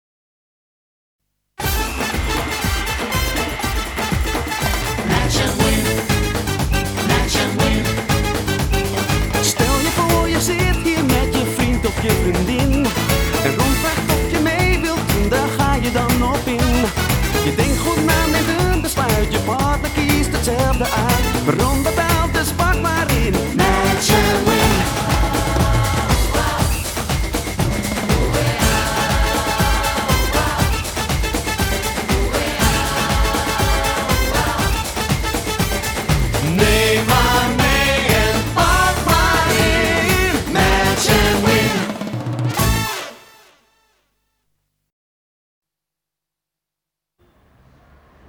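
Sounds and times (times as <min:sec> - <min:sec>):
Latin salsa music: 0:01.6 - 0:43.6.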